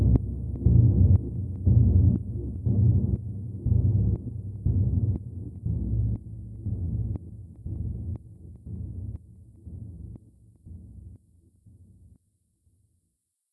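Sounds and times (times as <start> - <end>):
heartbeat chord: 0.0 - 10.2.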